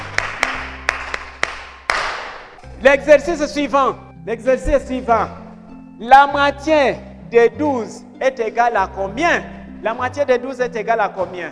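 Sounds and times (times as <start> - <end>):
schoolchildren clapping for a classmate in a French maths lesson: 0.0 - 2.6
speech: 2.8 - 5.4, 6.0 - 11.4.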